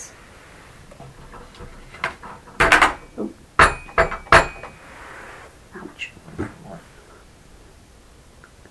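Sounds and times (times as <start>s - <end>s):
knocking: 0.9s - 4.8s.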